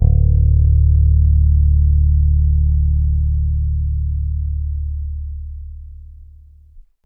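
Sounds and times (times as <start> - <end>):
indie rock bass ending: 0.0 - 4.7.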